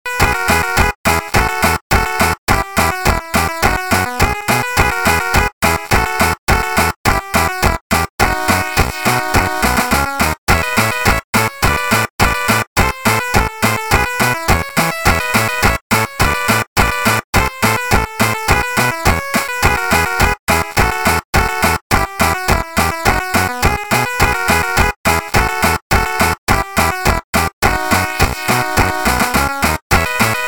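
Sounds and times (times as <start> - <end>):
SID chiptune music: 0.1 - 30.4.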